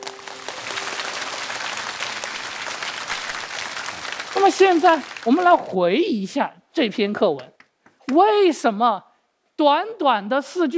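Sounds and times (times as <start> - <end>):
classroom of people clapping: 0.0 - 5.8
speech: 4.4 - 10.7.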